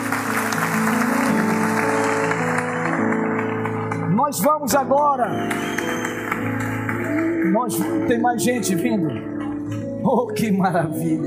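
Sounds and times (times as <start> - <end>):
audience applause: 0.0 - 9.9
speech: 4.3 - 5.9, 7.5 - 9.3, 10.0 - 11.2.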